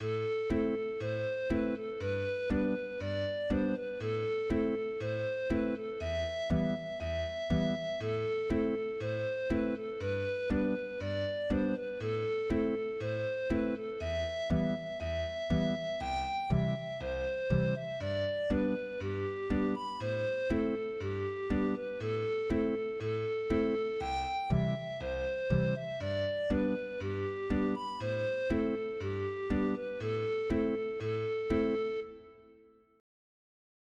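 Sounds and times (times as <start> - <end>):
instrumental music in A minor: 0.0 - 32.9.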